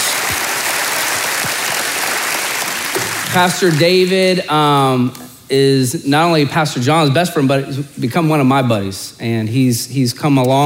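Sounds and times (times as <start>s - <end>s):
audience round of applause: 0.0s - 4.0s
speech: 3.3s - 10.6s.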